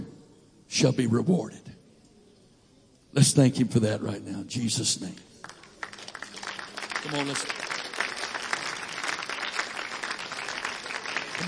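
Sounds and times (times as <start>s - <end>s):
speech: 0.7s - 1.7s, 3.2s - 5.4s, 7.0s - 7.6s
audience clapping hands: 5.4s - 11.4s.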